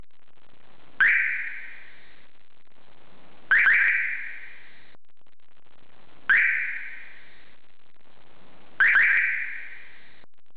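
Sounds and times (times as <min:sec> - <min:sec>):
siren: 0:01.0 - 0:02.2, 0:03.5 - 0:04.9, 0:06.3 - 0:07.4, 0:08.8 - 0:10.2.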